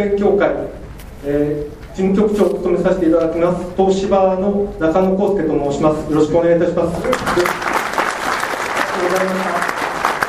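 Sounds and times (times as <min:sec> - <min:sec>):
speech: 0:00.0 - 0:07.7, 0:09.0 - 0:09.8
audience applause: 0:07.1 - 0:10.2.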